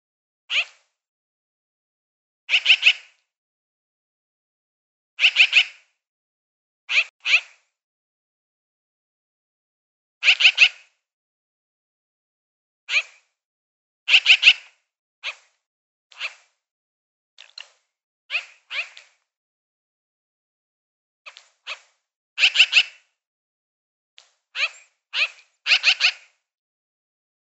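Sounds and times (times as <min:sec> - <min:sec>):
magpie giving scratchy chirps: 0:02.5 - 0:03.1, 0:05.2 - 0:05.8, 0:06.9 - 0:07.7, 0:10.2 - 0:10.8, 0:14.1 - 0:15.5, 0:16.2 - 0:16.5, 0:18.3 - 0:19.0, 0:21.7 - 0:23.0, 0:24.6 - 0:26.4.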